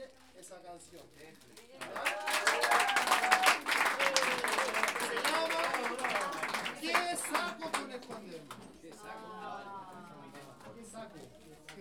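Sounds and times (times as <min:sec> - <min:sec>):
speech: 0:00.5 - 0:03.0
audience applause at an intimate orchestra concert: 0:01.8 - 0:08.6.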